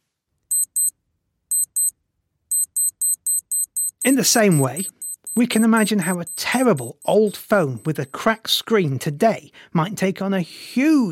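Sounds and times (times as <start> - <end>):
1980s digital watch alarm beeping: 0.5 - 0.9, 1.5 - 1.9, 2.5 - 8.7
speech: 4.0 - 11.1.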